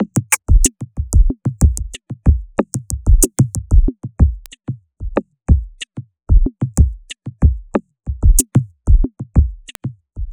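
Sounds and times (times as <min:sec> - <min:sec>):
dance percussion: 0:00.0 - 0:04.6, 0:06.3 - 0:09.6.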